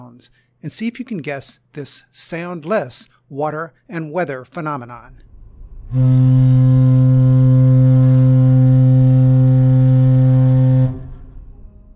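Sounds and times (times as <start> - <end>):
speech: 0.2 - 5.3, 5.9 - 6.5
faint hum: 4.9 - 11.9
ship's foghorn: 5.1 - 11.9.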